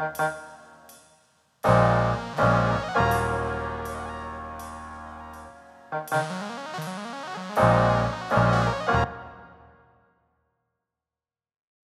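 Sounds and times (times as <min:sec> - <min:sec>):
lo-fi music: 0:01.6 - 0:09.4.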